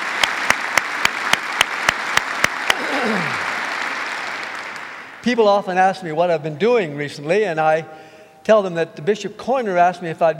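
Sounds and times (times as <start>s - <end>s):
audience applauding: 0.0s - 5.2s
sharp rhythmic claps: 0.0s - 5.5s
speech: 5.2s - 10.3s.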